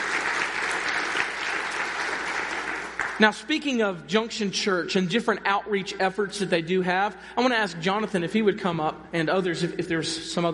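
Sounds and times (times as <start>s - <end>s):
audience clapping: 0.0s - 3.5s
speech: 3.2s - 10.5s.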